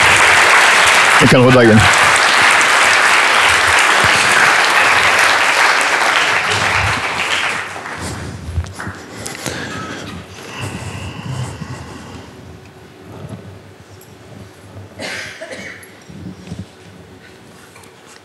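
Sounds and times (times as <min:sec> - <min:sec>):
audience applause: 0:00.0 - 0:11.3
speech: 0:01.3 - 0:02.0.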